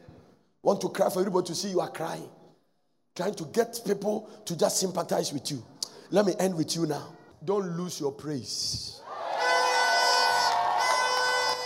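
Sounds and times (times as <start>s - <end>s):
speech: 0.7s - 2.4s, 3.2s - 9.0s
church audience shouting: 9.0s - 11.6s.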